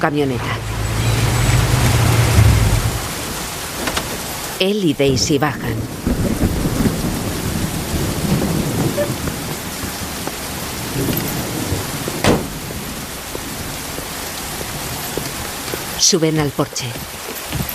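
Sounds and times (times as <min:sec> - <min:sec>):
speech: 0:00.0 - 0:00.7, 0:04.6 - 0:06.0, 0:16.1 - 0:17.5
steady rain pouring at night: 0:00.0 - 0:17.7
sharp crack: 0:12.2 - 0:12.8.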